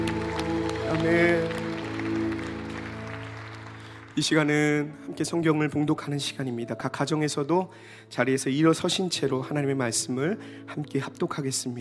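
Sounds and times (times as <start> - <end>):
audience applause: 0.0 - 4.5
speech: 0.9 - 1.6, 4.2 - 11.7.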